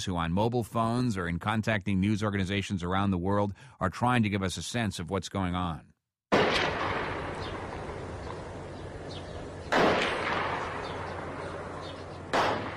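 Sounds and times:
speech: 0.0 - 5.9
heavy booming blasts of gunfire and artillery: 6.3 - 8.8, 9.6 - 12.7
constant low noisy background: 6.4 - 12.7.

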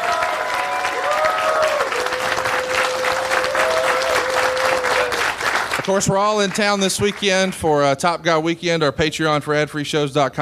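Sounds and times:
live audience applause: 0.0 - 7.6
speech: 5.9 - 10.4.

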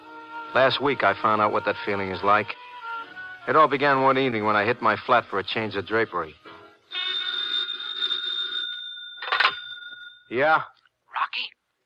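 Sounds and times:
speech: 0.5 - 2.6, 3.4 - 6.4, 10.3 - 10.7, 11.3 - 11.6
telephone ringing: 6.9 - 10.3.

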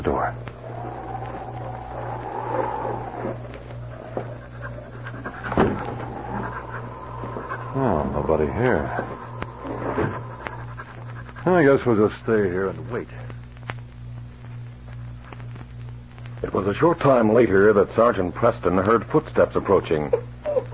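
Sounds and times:
speech: 0.0 - 0.5, 8.3 - 9.2, 11.4 - 13.3, 16.6 - 20.3
dog panting: 3.8 - 11.9.

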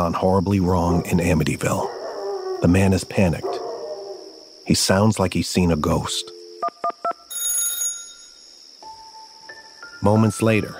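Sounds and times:
speech: 0.0 - 2.0, 2.6 - 3.6, 4.7 - 6.4, 10.0 - 10.7
electronic beeps: 6.1 - 8.4
mid-pitched telephone line tone: 6.1 - 8.6
telephone ringing for a 911 call: 6.2 - 8.4.

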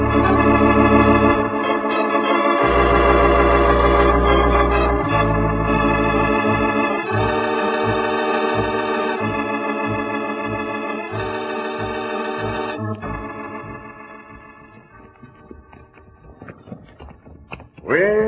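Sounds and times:
sustained musical tones: 0.0 - 16.4
horses' hooves clip-clopping in a Western radio drama: 12.8 - 18.2.

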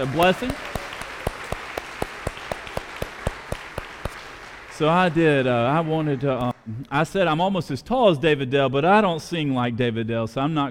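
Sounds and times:
speech: 0.0 - 0.7, 4.8 - 10.6
audience applause: 0.0 - 6.5.

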